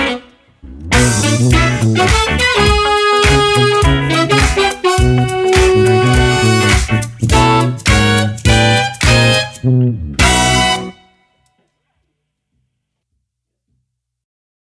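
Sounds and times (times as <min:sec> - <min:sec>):
groove music: 0:00.0 - 0:11.5.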